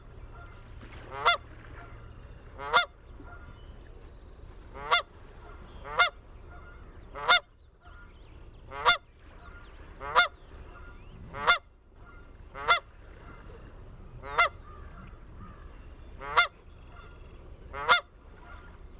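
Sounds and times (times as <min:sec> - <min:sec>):
Canada geese honking: 0:00.3 - 0:02.0, 0:02.6 - 0:03.6, 0:04.8 - 0:08.1, 0:08.7 - 0:13.5, 0:14.2 - 0:18.8.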